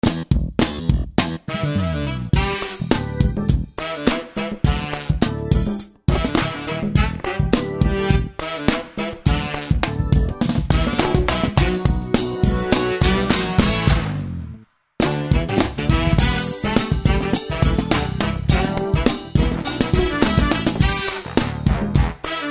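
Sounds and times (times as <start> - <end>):
picked electric bass: 0.0 - 3.8, 4.7 - 8.3, 9.3 - 22.2.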